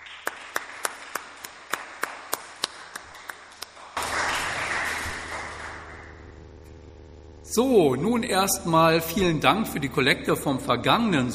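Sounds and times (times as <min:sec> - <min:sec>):
audience applause: 0:00.0 - 0:06.4
speech: 0:07.5 - 0:11.3.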